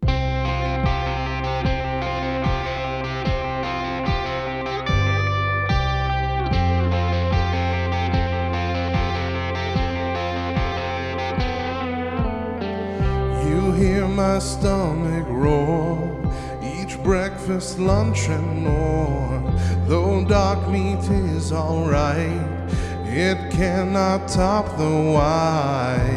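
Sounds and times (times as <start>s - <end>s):
distorted electric guitars: 0.0s - 26.1s
parody worship-style rock song about fast food: 0.0s - 26.1s
sustained keyboard chords: 0.0s - 26.1s
steady driving drum beat: 9.0s - 19.6s, 20.3s - 25.4s
speech: 14.4s - 16.0s, 17.0s - 26.1s.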